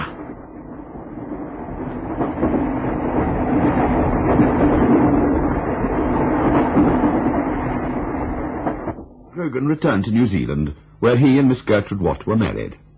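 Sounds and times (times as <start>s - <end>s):
train rumbling along the tracks: 0.0s - 11.7s
speech: 9.5s - 12.9s.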